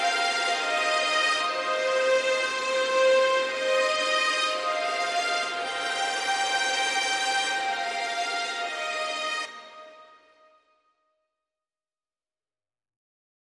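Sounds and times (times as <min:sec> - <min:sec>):
string instruments mix: 0:00.0 - 0:10.6.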